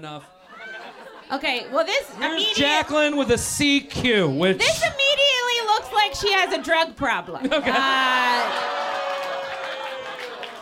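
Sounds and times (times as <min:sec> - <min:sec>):
speech: 0:00.0 - 0:00.4, 0:01.3 - 0:08.8
laughter: 0:00.5 - 0:03.3, 0:06.0 - 0:10.5
crowd applauding and cheering: 0:07.8 - 0:10.5.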